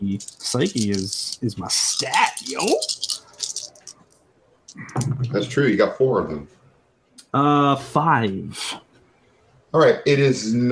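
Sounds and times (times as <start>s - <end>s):
speech: 0.0s - 3.1s, 4.9s - 6.6s, 7.3s - 8.8s, 9.7s - 10.7s
dice clattering on a hard surface: 0.0s - 5.1s.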